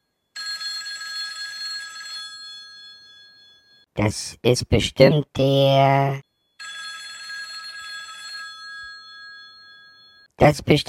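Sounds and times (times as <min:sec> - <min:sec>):
telephone bell ringing: 0:00.2 - 0:03.9, 0:06.2 - 0:10.3
speech: 0:04.0 - 0:06.3, 0:10.4 - 0:10.8.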